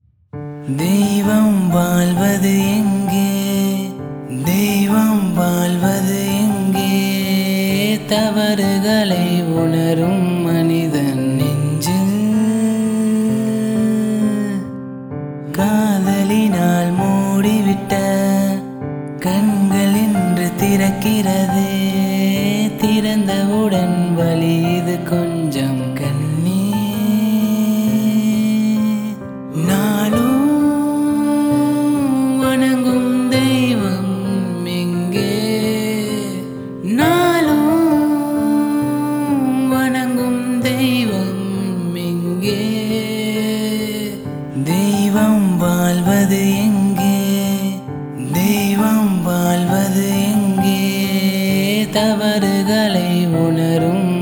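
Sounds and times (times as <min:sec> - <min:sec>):
unplugged piano: 0:00.0 - 0:54.2.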